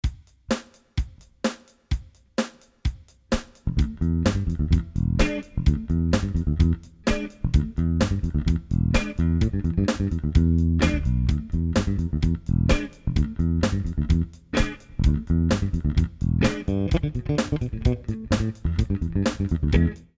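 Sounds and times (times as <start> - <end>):
groove music: 0.0 - 20.1.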